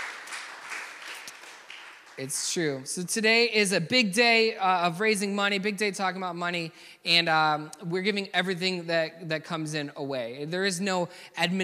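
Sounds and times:
audience applause: 0.0s - 2.8s
speech: 2.2s - 11.6s.

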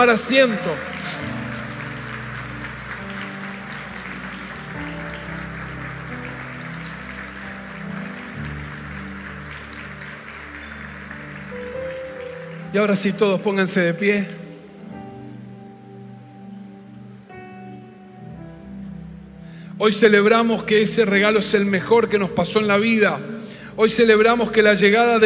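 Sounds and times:
speech: 0.0s - 1.3s, 12.7s - 14.4s, 19.8s - 25.2s
audience applause: 0.0s - 13.5s.

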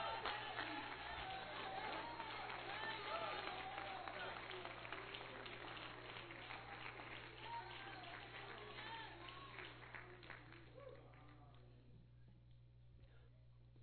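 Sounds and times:
audience clapping hands: 0.0s - 11.7s.

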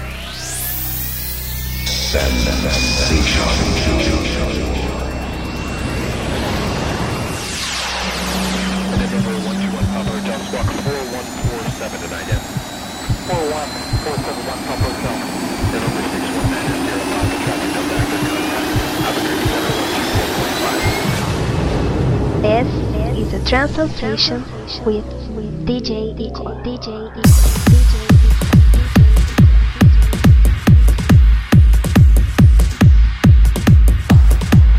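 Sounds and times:
steady pulsing throb: 0.0s - 34.7s
jet airplane takeoff roar used as an intro effect: 1.9s - 23.9s
speech: 2.1s - 4.7s, 13.3s - 18.4s, 22.4s - 27.5s.

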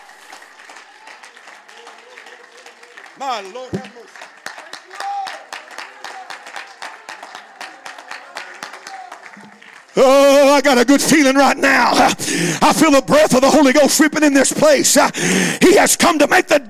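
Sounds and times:
audience clapping hands: 0.0s - 12.5s
speech: 3.2s - 4.2s, 10.0s - 16.6s.

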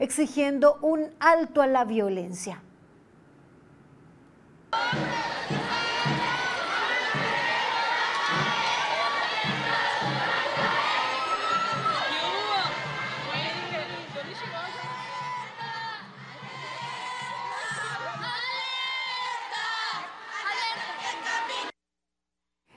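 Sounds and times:
speech: 0.0s - 2.7s
crowd of women and girls shouting and chanting in a march: 4.8s - 21.7s.

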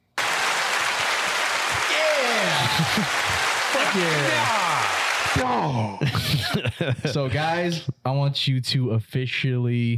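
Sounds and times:
canned crowd applause sound effect from a soundboard: 0.0s - 5.8s
laughter: 0.8s - 7.9s
speech: 2.8s - 4.6s, 5.3s - 9.9s.

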